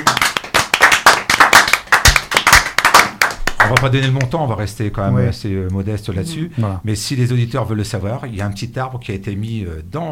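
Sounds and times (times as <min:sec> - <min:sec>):
applause for visiting students: 0:00.0 - 0:04.3
speech: 0:03.7 - 0:10.1.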